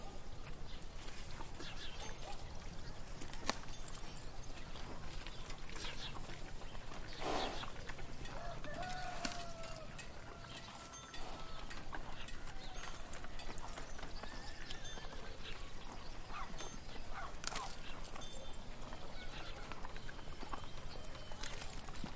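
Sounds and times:
birds chirping: 0.0 - 22.1
horse hooves clip-clopping: 0.0 - 22.1
animal calls: 8.4 - 21.7.

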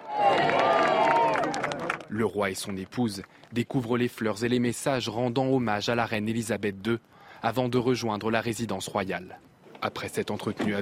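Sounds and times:
scattered cheers: 0.0 - 2.1
overlapping voices: 0.0 - 3.4
crowd applauding outside a palace: 0.0 - 3.7
speech: 2.1 - 10.8.

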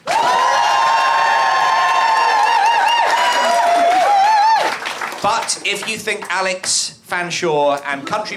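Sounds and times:
audience shouted whoops: 0.0 - 4.8
audience cheering: 0.0 - 5.8
audience clapping: 0.0 - 6.9
speech: 5.2 - 8.3.

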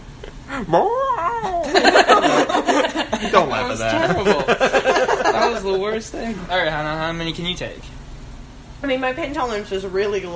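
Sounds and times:
person vocally imitating a coyote howl merged with a Wilhelm scream: 0.5 - 1.9
speech: 0.6 - 8.0, 8.8 - 10.3
laughter: 1.4 - 6.1.

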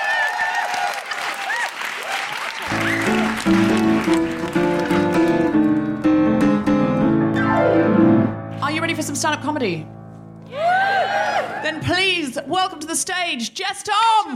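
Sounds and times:
audience applause for a performer at a comedy show: 0.0 - 6.1
speech: 3.5 - 4.2, 8.9 - 10.0, 11.7 - 14.3
tonal layer: 6.0 - 10.4.

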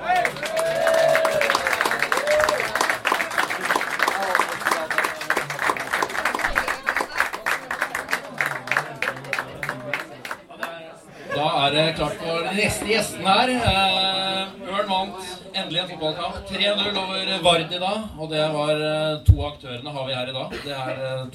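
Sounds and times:
audience cheer: 0.0 - 7.4
live audience applause: 0.0 - 10.8
speech: 12.0 - 14.1, 14.9 - 21.3.

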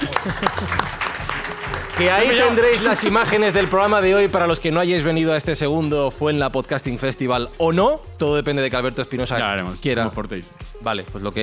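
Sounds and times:
laughter: 0.0 - 3.9
audience applause: 0.0 - 4.3
speech: 0.2 - 1.0, 1.7 - 11.4.

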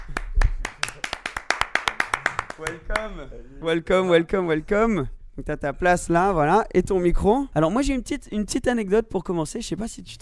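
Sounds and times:
brisk hand clapping: 0.0 - 3.1
speech: 2.6 - 10.2.

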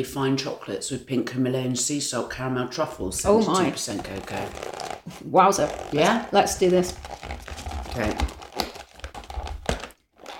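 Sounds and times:
speech: 0.0 - 8.4
plastic chocolate wrapper crinkling being pried open: 3.6 - 10.3.

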